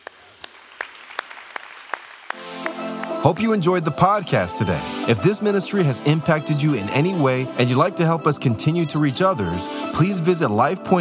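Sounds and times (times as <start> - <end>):
audience hand clapping: 0.0 - 4.4
speech: 3.2 - 11.0.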